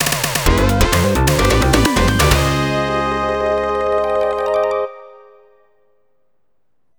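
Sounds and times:
game clear jingle: 0:00.4 - 0:05.5.

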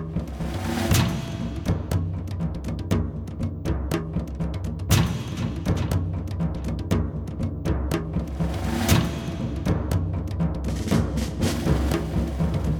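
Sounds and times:
suspense music: 0:00.2 - 0:12.7.

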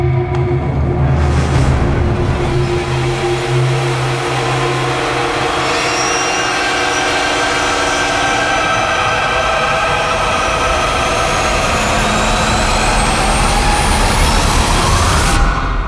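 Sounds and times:
transition sound: 0:00.2 - 0:15.8.

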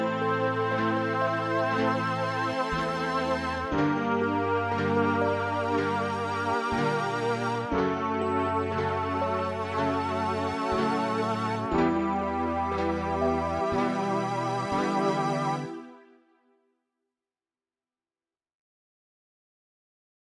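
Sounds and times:
MIDI dungeon music: 0:00.0 - 0:16.0.

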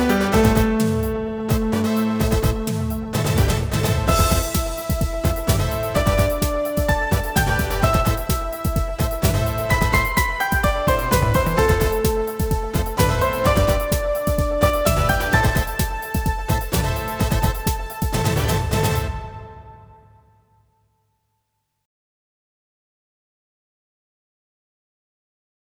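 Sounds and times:
mechanic techno music: 0:00.0 - 0:20.1.

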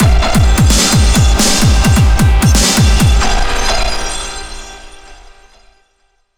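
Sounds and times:
action boss battle music: 0:00.0 - 0:03.8.

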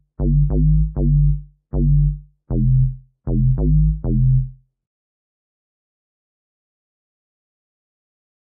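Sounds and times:
bassline: 0:00.0 - 0:04.6.

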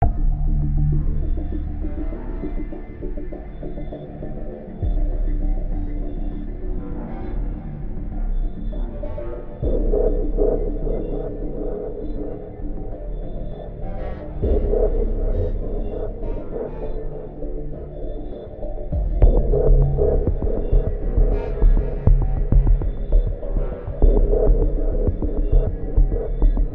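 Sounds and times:
music without bass: 0:00.0 - 0:26.7.

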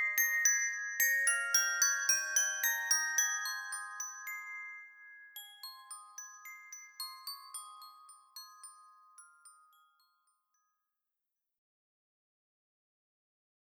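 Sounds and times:
music box melody: 0:00.0 - 0:10.4.

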